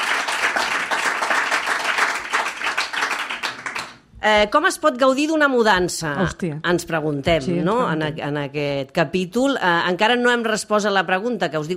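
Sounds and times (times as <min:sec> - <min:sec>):
audience applause: 0:00.0 - 0:04.0
speech: 0:04.2 - 0:11.7.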